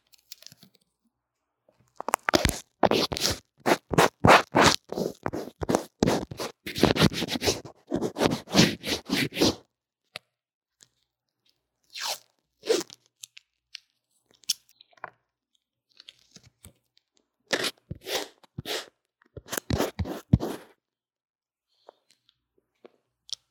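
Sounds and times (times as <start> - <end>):
crunchy rubs: 2.0 - 9.6
scratchy drawing and makeup strokes on an earphone mic: 2.4 - 9.6, 19.5 - 20.7.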